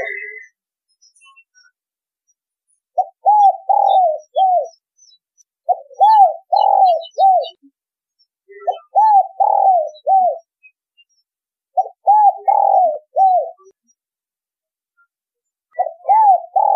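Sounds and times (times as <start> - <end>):
spotted dove cooing: 3.0 - 4.7, 5.7 - 7.6, 8.6 - 10.5, 11.8 - 13.7, 15.8 - 16.7.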